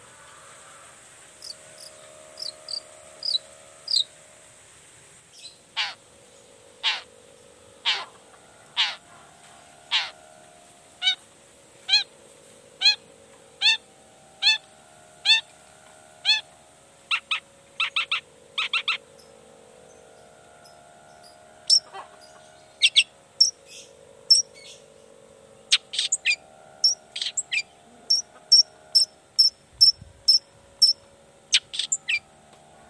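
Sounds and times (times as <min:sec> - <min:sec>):
long-tailed shrike harsh buzzy calls: 0:00.0 - 0:04.5, 0:05.3 - 0:32.4
low background hum: 0:00.0 - 0:32.8.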